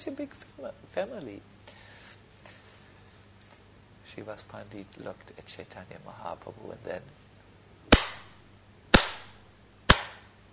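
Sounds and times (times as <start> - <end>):
speech: 0.0 - 1.6, 4.2 - 7.2
hand clapping: 9.9 - 10.3.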